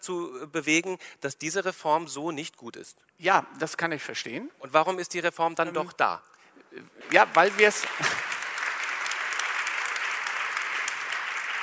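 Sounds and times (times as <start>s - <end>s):
speech: 0.0s - 8.2s
audience clapping frenetically: 7.0s - 11.6s.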